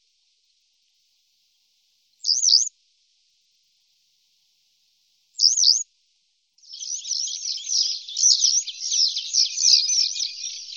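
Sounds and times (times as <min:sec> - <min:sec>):
Western yellow wagtail buzzy calls: 0:06.7 - 0:10.7.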